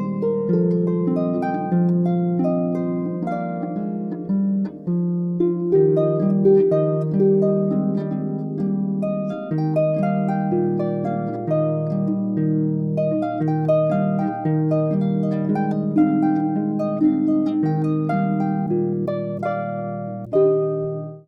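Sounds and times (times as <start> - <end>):
harp: 0.0 - 21.2.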